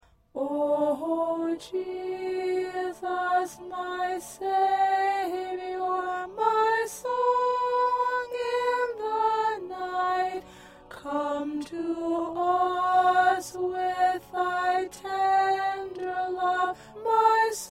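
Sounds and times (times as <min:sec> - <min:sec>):
soprano singing: 0:00.3 - 0:17.6.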